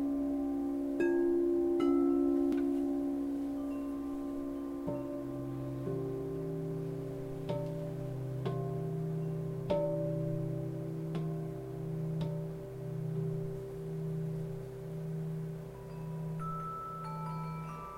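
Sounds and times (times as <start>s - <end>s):
light chimes: 0.0s - 13.0s, 15.7s - 17.9s
crystal singing bowls ringing in long low tones: 0.0s - 17.9s.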